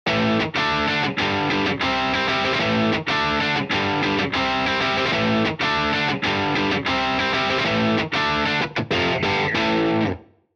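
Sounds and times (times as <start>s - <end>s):
Matchless speaker cabinet: 0.1s - 10.3s.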